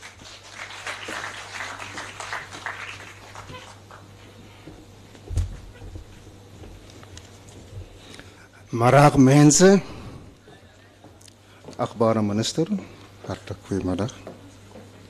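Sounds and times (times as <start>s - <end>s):
audience applause: 0.0s - 4.1s
speech: 8.7s - 9.9s, 11.9s - 14.3s.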